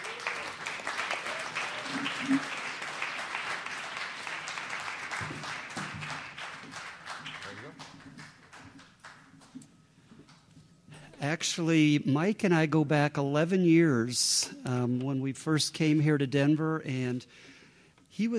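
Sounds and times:
crowd voices: 0.0 - 2.8
audience applause welcoming a guest speaker: 0.0 - 9.6
speech: 2.0 - 2.6, 11.4 - 17.5, 18.2 - 18.3.

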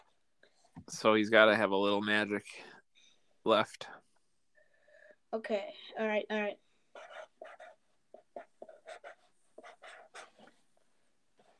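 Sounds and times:
speech: 0.9 - 2.7, 3.4 - 4.0, 5.3 - 6.6
pen scribbling while notes are written down: 6.9 - 10.6.

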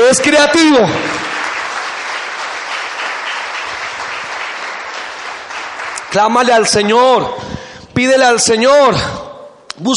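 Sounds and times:
speech: 0.1 - 1.2, 6.1 - 9.2, 9.8 - 9.9
audience applauding: 0.5 - 7.2.

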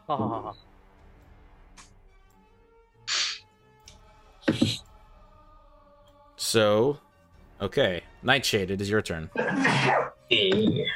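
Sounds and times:
speech: 0.1 - 0.7, 6.5 - 10.9
sneeze: 9.4 - 10.2.

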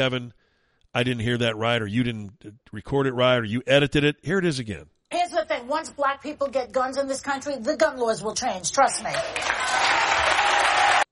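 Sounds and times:
speech: 0.0 - 4.9, 5.6 - 9.8
audience clapping in played recording: 8.8 - 11.1.

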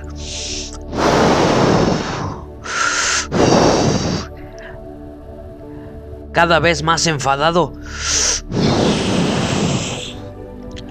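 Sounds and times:
wolf blowing hard at a house: 0.4 - 4.4, 8.0 - 10.3
speech: 6.4 - 8.2.

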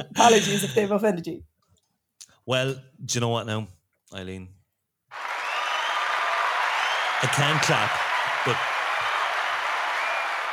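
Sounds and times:
speech: 0.0 - 1.5, 2.4 - 5.2, 7.2 - 8.7
hand clapping: 5.1 - 10.5.

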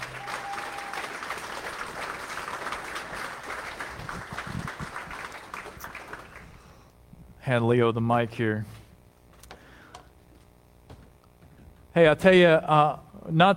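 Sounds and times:
congregation applauding to welcome a speaker at a church gathering: 0.0 - 6.9
speech: 7.5 - 8.8, 12.0 - 13.5.

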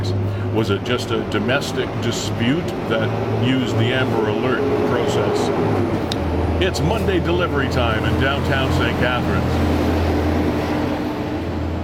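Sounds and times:
utility truck driving past: 0.0 - 11.8
speech: 0.6 - 9.9.

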